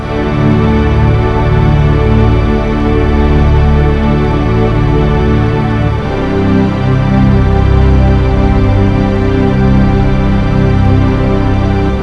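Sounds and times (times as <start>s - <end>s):
calm music: 0.0s - 12.0s.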